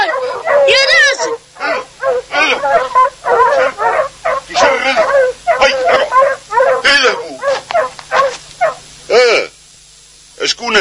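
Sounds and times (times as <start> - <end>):
dogs barking at a rural village: 0.0 - 9.0.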